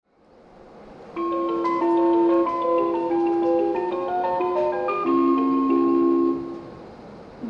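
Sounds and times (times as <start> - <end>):
melody: 1.2 - 6.6.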